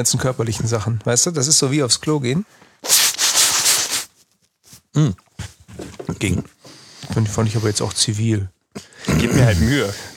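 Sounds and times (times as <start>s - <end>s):
speech: 0.0s - 3.1s, 5.0s - 10.1s
person blowing nose: 2.8s - 4.1s, 9.0s - 10.1s.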